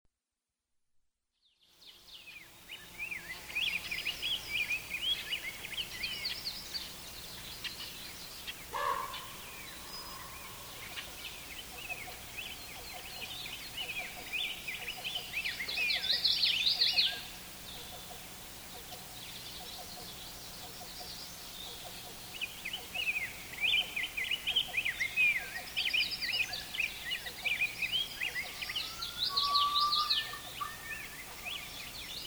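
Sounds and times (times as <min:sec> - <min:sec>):
birds: 0:01.8 - 0:32.2.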